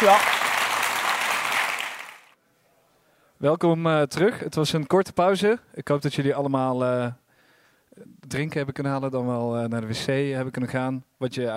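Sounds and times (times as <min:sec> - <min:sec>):
speech: 0:00.0 - 0:00.4, 0:03.4 - 0:07.2, 0:08.0 - 0:11.5
thunderous audience applause: 0:00.0 - 0:02.3.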